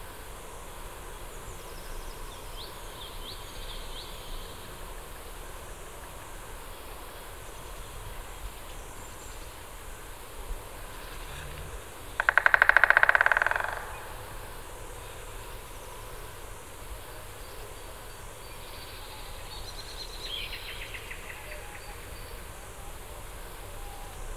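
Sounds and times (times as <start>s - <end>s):
white-backed woodpecker call: 12.2s - 15.2s.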